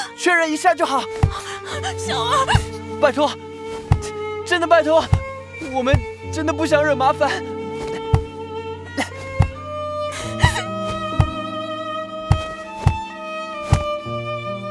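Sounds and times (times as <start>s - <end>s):
speech: 0.2s - 3.5s, 4.5s - 7.5s
forehead knocking hard on floor in a kowtow: 1.1s - 1.5s, 2.4s - 2.8s, 3.7s - 4.2s, 5.0s - 6.2s, 7.8s - 8.4s, 9.0s - 9.6s, 10.2s - 11.4s, 12.2s - 14.0s.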